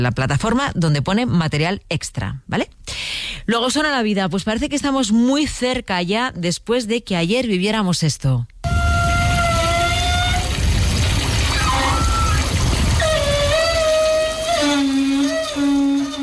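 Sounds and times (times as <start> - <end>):
speech: 0.0 - 8.5
outdoor beach shower running: 9.0 - 16.1.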